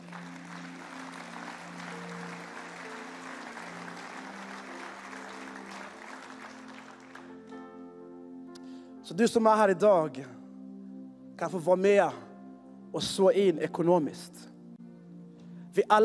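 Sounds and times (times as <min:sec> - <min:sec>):
audience applauding: 0:00.0 - 0:07.6
speech: 0:09.1 - 0:10.4, 0:11.4 - 0:12.3, 0:12.9 - 0:14.5, 0:15.8 - 0:16.0.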